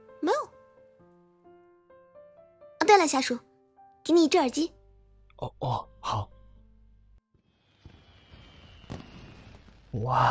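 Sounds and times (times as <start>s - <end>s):
speech: 2.9s - 4.8s, 5.4s - 6.3s, 10.0s - 10.2s
recorded fireworks bursting: 7.4s - 10.2s.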